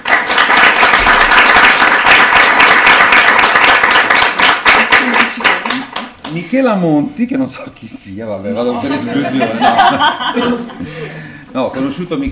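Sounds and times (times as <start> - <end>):
warm audience applause: 0.0 - 6.3
speech: 6.3 - 12.3
laughter: 8.5 - 11.3.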